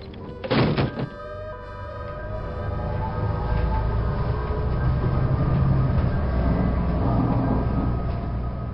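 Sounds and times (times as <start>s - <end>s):
bus driving away: 1.1s - 8.7s.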